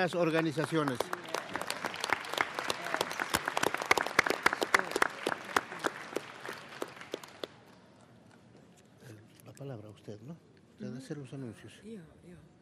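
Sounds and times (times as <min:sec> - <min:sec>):
speech: 0:00.0 - 0:01.3, 0:11.1 - 0:12.5
audience applause: 0:00.0 - 0:07.6.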